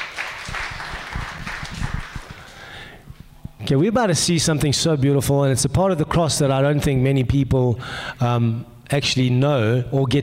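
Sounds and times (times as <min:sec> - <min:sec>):
crowd applauding: 0:00.0 - 0:02.7
speech: 0:03.7 - 0:10.2.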